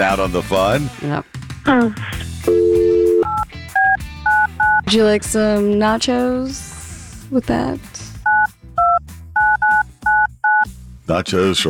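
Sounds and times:
speech: 0:00.0 - 0:02.6, 0:04.9 - 0:06.7, 0:07.3 - 0:08.0, 0:11.1 - 0:11.6
telephone dialing touch-tone beeps: 0:02.5 - 0:04.9, 0:08.2 - 0:10.6.

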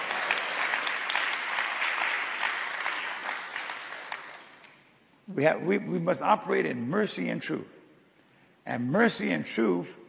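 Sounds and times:
audience clapping hands: 0:00.0 - 0:04.9
speech: 0:05.3 - 0:07.8, 0:08.7 - 0:10.0.

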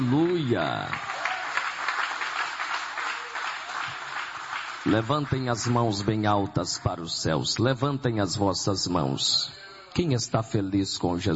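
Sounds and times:
speech: 0:00.0 - 0:01.1, 0:04.8 - 0:11.3
audience applauding: 0:00.0 - 0:06.8.

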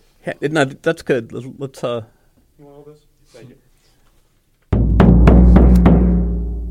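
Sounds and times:
speech: 0:00.2 - 0:03.6
deep booming strikes on a dauli drum: 0:04.7 - 0:06.7.

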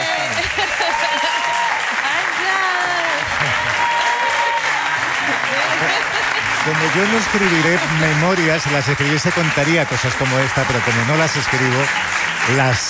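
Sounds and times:
laughter: 0:00.0 - 0:11.9
crowd applause: 0:00.0 - 0:12.8
speech: 0:06.8 - 0:12.8.

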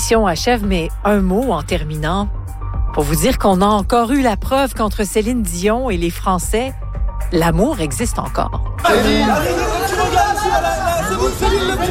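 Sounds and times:
speech: 0:00.1 - 0:11.8
crowd of fans cheering outside hotel: 0:08.8 - 0:11.8.

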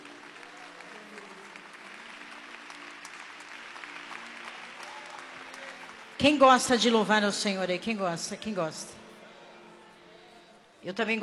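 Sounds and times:
church audience applauding: 0:00.0 - 0:06.7
speech: 0:06.2 - 0:09.0, 0:10.8 - 0:11.2.

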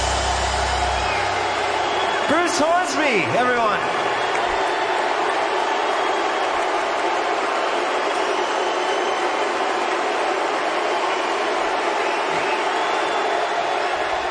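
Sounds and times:
concert audience applause: 0:00.0 - 0:14.2
speech: 0:02.5 - 0:04.2.

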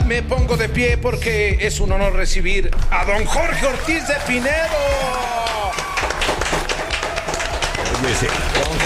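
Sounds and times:
speech: 0:00.1 - 0:05.6, 0:08.0 - 0:08.8
small group clapping: 0:03.1 - 0:08.8
voices and cheers: 0:03.2 - 0:08.8.

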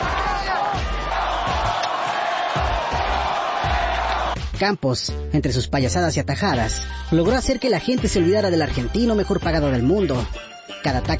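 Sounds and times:
stadium crowd ovation: 0:00.0 - 0:04.5
speech: 0:04.6 - 0:11.1.

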